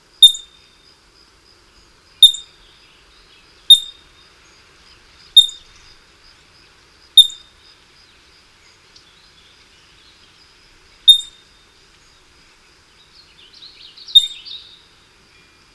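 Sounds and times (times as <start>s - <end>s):
California ground squirrel calling: 0.1s - 0.8s, 2.1s - 2.7s, 3.5s - 4.4s, 5.3s - 6.0s, 7.1s - 7.6s, 11.0s - 11.7s, 13.9s - 14.8s.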